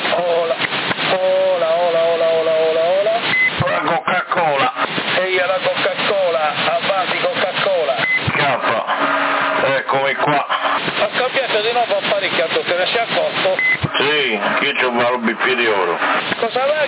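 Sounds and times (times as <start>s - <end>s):
faint steady hum: 0.0s - 16.8s
voices crackling over a narrow-band CB radio channel in Sassari, Italy: 0.0s - 16.8s
short high CB radio beep tone: 3.3s - 3.6s, 8.0s - 9.6s, 13.5s - 14.7s.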